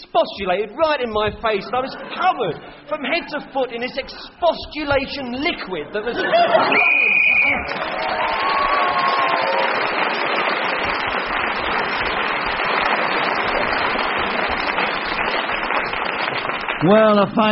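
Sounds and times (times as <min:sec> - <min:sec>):
speech: 0:00.2 - 0:08.6, 0:16.8 - 0:17.5
laughter: 0:01.5 - 0:03.6, 0:06.0 - 0:09.1
audience applause and cheering: 0:06.6 - 0:17.2
whistle blown to end a turn: 0:06.7 - 0:07.8.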